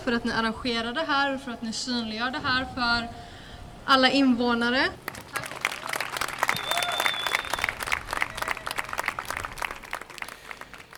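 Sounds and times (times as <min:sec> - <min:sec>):
speech: 0:00.0 - 0:03.3, 0:03.9 - 0:05.2
crowd applauding outdoors at a street demonstration: 0:05.1 - 0:10.9
whistle: 0:06.5 - 0:07.8.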